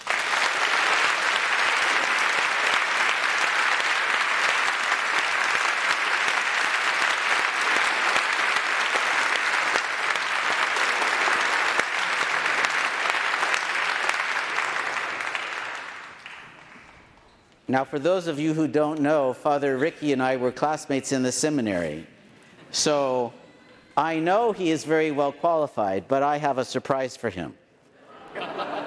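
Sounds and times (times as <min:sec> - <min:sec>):
large audience applause: 0:00.0 - 0:17.1
speech: 0:17.7 - 0:22.1, 0:22.7 - 0:23.4, 0:24.0 - 0:27.6
laughter: 0:28.0 - 0:28.8.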